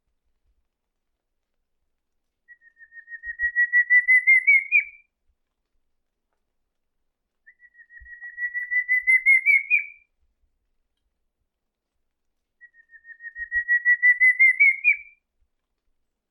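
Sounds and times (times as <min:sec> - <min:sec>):
pinto do mato singing: 0:02.5 - 0:05.0, 0:07.5 - 0:10.1, 0:12.6 - 0:15.2.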